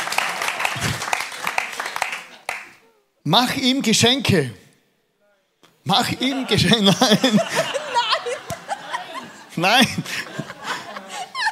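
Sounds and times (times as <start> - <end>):
hand clapping: 0.0 - 2.8, 8.4 - 8.6
speech: 3.2 - 4.6, 5.8 - 7.8, 9.6 - 10.3
laughter: 6.0 - 11.5.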